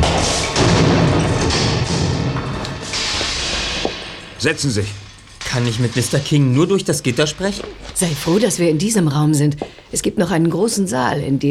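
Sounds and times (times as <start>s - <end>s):
heavy door falling shut: 0.0s - 8.5s
speech: 4.4s - 11.5s.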